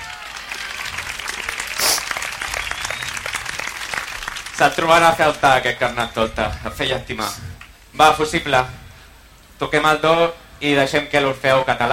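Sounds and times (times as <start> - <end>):
audience applause: 0.0 - 6.3
speech: 4.6 - 7.4, 8.0 - 8.8, 9.6 - 11.9.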